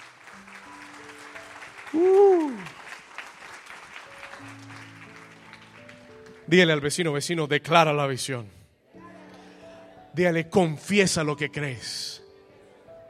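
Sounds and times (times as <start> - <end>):
audience applause: 0.0 - 6.5
speech: 1.9 - 2.7, 6.5 - 8.6, 10.2 - 12.2.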